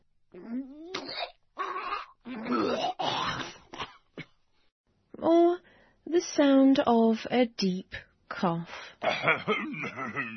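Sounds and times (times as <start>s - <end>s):
person vomiting: 0.4s - 4.0s, 9.0s - 10.3s
speech: 6.2s - 10.3s.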